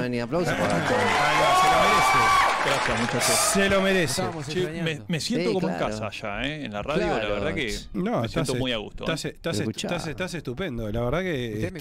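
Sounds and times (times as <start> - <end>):
speech: 0.0 - 11.8
studio applause: 0.4 - 4.7.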